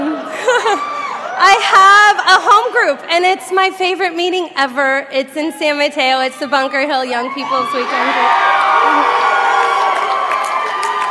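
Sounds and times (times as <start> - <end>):
audience at a recovery meeting cheering and whooping: 0.0 - 1.7, 6.3 - 11.0
speech: 1.5 - 9.2.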